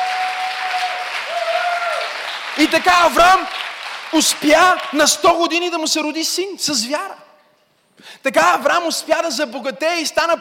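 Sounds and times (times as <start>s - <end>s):
audience clapping: 0.0s - 5.4s
speech: 2.6s - 7.2s, 8.2s - 10.3s.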